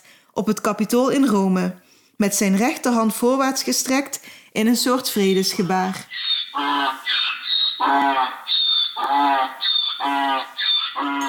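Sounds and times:
speech: 0:00.4 - 0:07.2, 0:07.8 - 0:08.4
donkey braying: 0:06.0 - 0:11.2.

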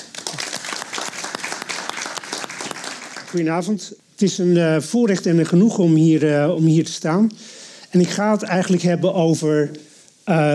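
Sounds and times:
audience applause: 0:00.0 - 0:03.4
speech: 0:03.3 - 0:10.5.

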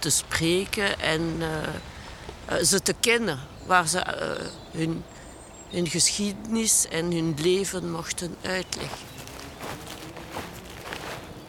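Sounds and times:
speech: 0:00.0 - 0:01.9, 0:02.5 - 0:09.9
footsteps walking onto a meadow of grass and young plants: 0:08.6 - 0:11.4.

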